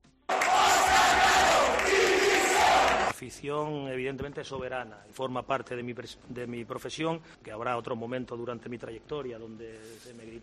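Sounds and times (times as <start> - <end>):
football crowd chanting for resignation: 0.3 - 3.1
speech: 3.2 - 10.4.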